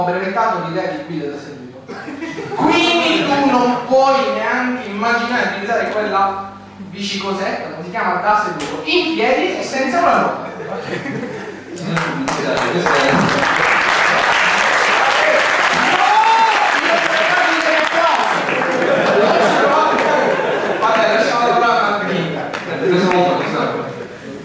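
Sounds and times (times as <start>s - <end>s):
speech: 0.0s - 13.6s
laughter: 1.9s - 3.6s, 10.3s - 24.4s
applause: 11.9s - 20.3s.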